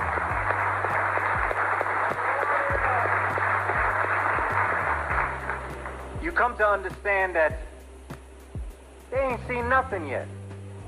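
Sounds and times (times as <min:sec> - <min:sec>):
audience applause: 0:00.0 - 0:06.1
speech: 0:06.4 - 0:07.7, 0:09.1 - 0:10.4.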